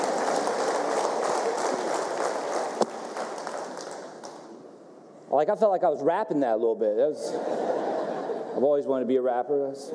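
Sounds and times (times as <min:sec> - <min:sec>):
crowd applause: 0:00.0 - 0:04.6
speech: 0:05.3 - 0:07.5, 0:08.6 - 0:09.9
laughter: 0:07.2 - 0:08.8.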